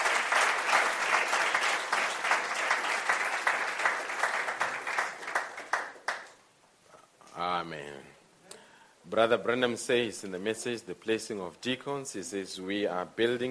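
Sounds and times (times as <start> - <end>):
audience applauding: 0.0 - 6.4
speech: 9.1 - 13.5.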